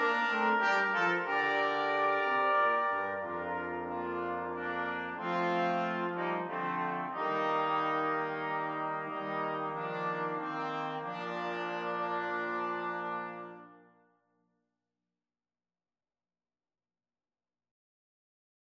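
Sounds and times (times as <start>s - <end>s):
brass quartet playing: 0.0s - 13.9s.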